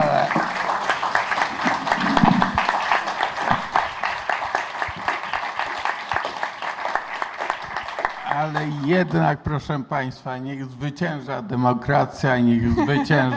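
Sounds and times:
audience applause: 0.0 - 9.2
speech: 8.9 - 13.3
laughter: 12.5 - 13.3.

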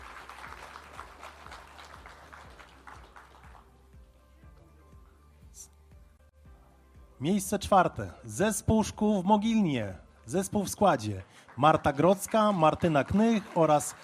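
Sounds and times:
audience applause: 0.0 - 3.8, 11.2 - 14.0
speech: 7.2 - 14.0.

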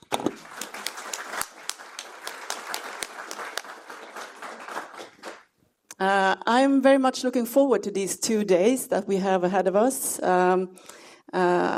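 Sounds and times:
audience applause: 0.0 - 5.5
speech: 6.0 - 11.7.

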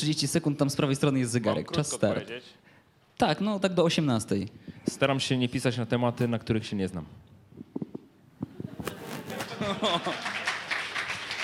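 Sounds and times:
speech: 0.0 - 7.3, 9.8 - 10.2
laughter: 8.6 - 11.0
applause: 9.9 - 11.4.

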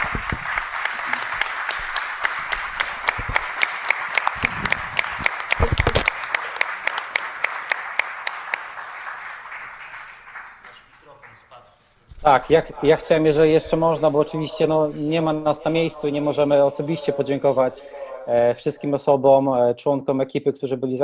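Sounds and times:
audience applause: 0.0 - 11.5
speech: 12.3 - 21.0.

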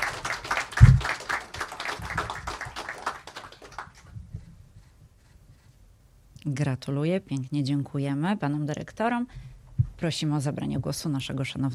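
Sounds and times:
audience applause: 0.0 - 4.0
speech: 6.5 - 11.7.

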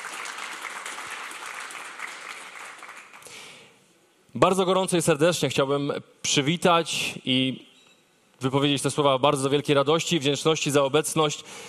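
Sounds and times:
audience applause: 0.0 - 3.3
speech: 4.4 - 7.7, 8.4 - 11.6.

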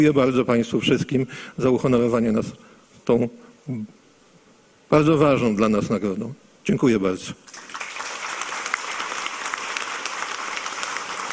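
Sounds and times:
speech: 0.0 - 4.0, 4.9 - 7.6
audience applause: 7.5 - 11.3.

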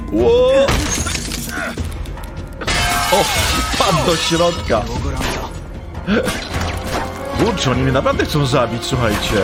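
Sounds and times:
speech: 0.1 - 0.6, 3.1 - 5.5, 6.0 - 6.5, 7.4 - 9.3
lamp shattering: 0.7 - 1.6, 2.6 - 5.0.

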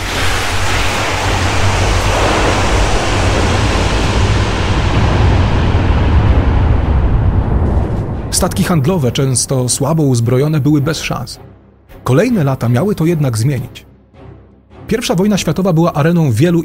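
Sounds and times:
ocean waves rolling with deep rumble: 0.0 - 9.1
speech: 8.4 - 13.9, 14.9 - 16.6.

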